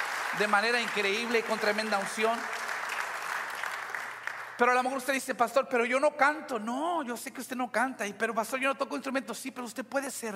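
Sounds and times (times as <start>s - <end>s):
audience applause for a worship band: 0.0s - 4.6s
speech: 0.4s - 2.6s, 4.6s - 10.3s.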